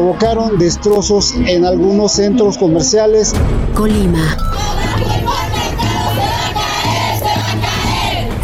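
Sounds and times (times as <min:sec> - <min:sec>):
speech: 0:00.0 - 0:05.3
crowd of women protesters chanting and shouting at a street march: 0:04.0 - 0:08.4.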